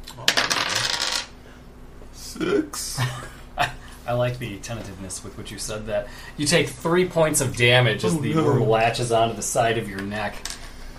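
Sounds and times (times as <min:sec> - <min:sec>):
dice clattering across a hard surface: 0:00.2 - 0:01.3
speech: 0:02.4 - 0:03.3, 0:04.1 - 0:10.5.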